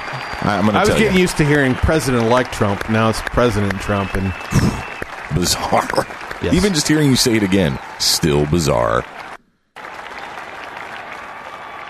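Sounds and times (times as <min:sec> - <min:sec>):
crowd applause: 0:00.0 - 0:11.8
speech: 0:00.4 - 0:09.2.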